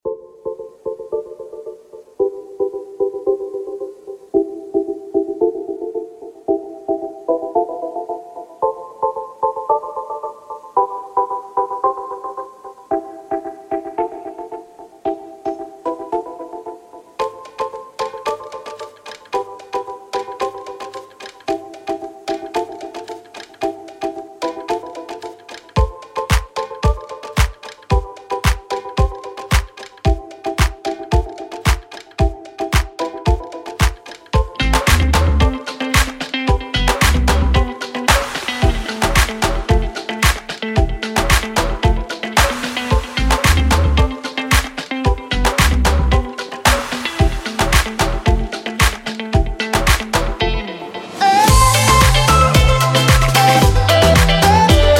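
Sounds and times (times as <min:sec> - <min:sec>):
instrumental music: 0:00.0 - 0:54.9.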